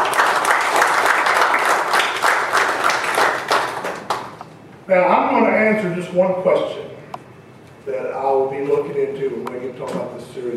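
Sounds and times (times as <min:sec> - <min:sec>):
crowd applauding: 0:00.0 - 0:04.4
speech: 0:04.9 - 0:06.8, 0:07.9 - 0:10.5.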